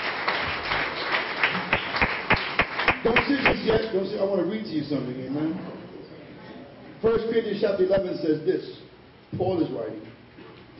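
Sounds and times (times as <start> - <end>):
audience clapping: 0.0 - 3.8
speech: 3.0 - 5.8, 7.0 - 10.1.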